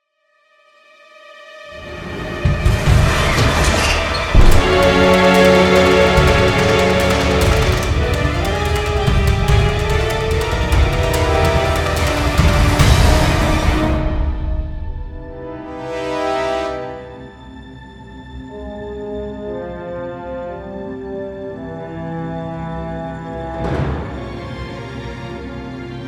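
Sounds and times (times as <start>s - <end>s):
tense horror battle music: 1.8s - 26.0s.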